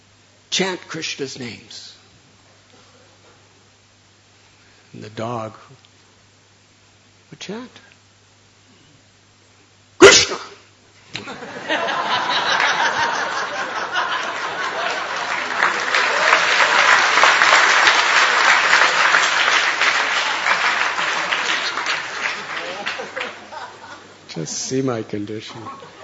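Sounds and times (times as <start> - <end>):
speech: 0.6 - 2.0, 5.0 - 5.9, 7.3 - 7.9, 24.4 - 26.0
scattered chuckles and laughter: 11.1 - 15.9, 20.2 - 24.3, 25.5 - 26.0
audience applause: 11.4 - 24.2.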